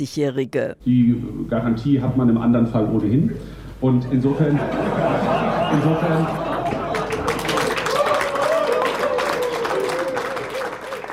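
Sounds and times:
speech: 0.0 - 6.4
laughter: 4.1 - 8.3
audience applause at candidate debate: 5.2 - 11.1.

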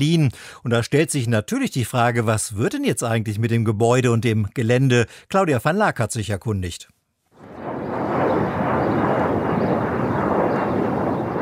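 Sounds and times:
speech: 0.0 - 7.0
airplane engine roaring at Berlin's Tegel airport: 7.4 - 11.4.

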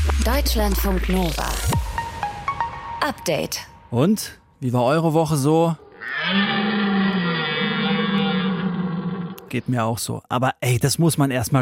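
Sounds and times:
speech: 0.2 - 1.7, 3.0 - 6.6, 9.5 - 11.5
person imitating a red deer stag's roar: 5.9 - 9.5.

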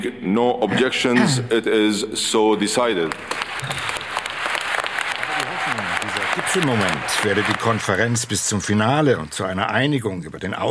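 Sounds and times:
speech: 0.0 - 4.0, 6.5 - 10.7
thunderous applause at conference: 3.1 - 10.1.

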